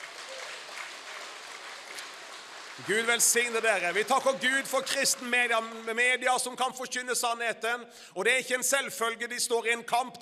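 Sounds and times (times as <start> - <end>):
audience applause: 0.0 - 6.2
speech: 2.8 - 10.2.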